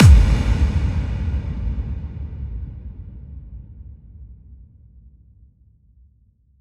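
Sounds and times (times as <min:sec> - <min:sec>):
kick drum effect: 0:00.0 - 0:02.7.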